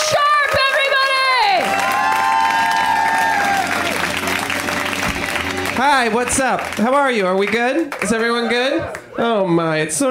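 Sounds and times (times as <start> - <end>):
comedy club audience applause and cheering: 0.0 - 9.2
high whoops: 1.2 - 4.1
speech: 5.8 - 10.1.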